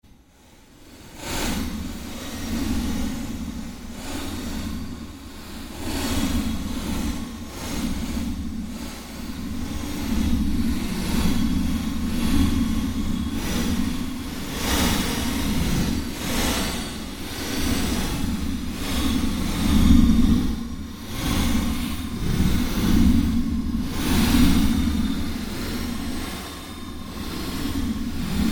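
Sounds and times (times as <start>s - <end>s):
fluctuating ambience made by manipulating other sounds: 0.3s - 28.5s.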